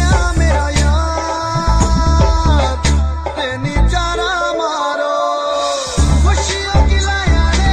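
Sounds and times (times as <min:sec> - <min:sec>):
ringtone: 0:00.2 - 0:07.6.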